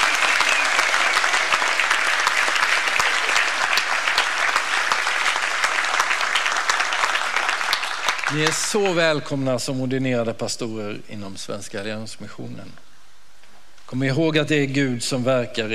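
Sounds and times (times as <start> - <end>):
audience applauding newly ordained pastors: 0.0 - 9.4
speech: 8.4 - 12.8, 13.9 - 15.7.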